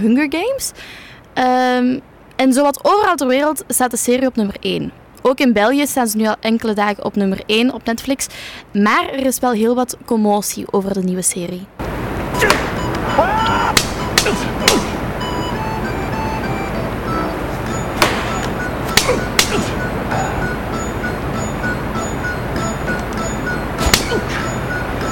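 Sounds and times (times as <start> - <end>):
speech: 0.0 - 11.8
low steady background: 0.0 - 25.1
slaps to the face during a game scene in a Netflix series: 12.4 - 12.8, 13.7 - 15.0, 18.0 - 19.7, 23.8 - 24.2.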